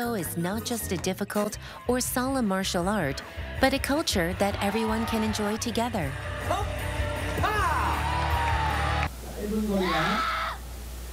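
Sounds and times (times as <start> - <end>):
speech: 0.0 - 6.8, 9.4 - 10.4
crowd cheering: 4.1 - 6.0, 6.9 - 9.1
voice calling out: 9.7 - 10.6.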